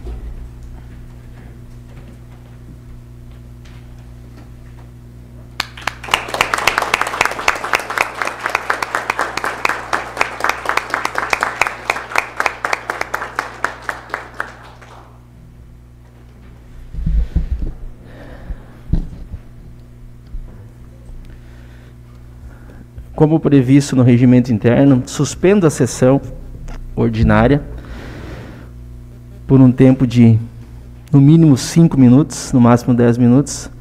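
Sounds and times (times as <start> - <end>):
standing applause for police officers: 5.6 - 15.2
speech: 23.2 - 26.4, 27.0 - 27.7, 29.5 - 30.5, 31.1 - 33.7.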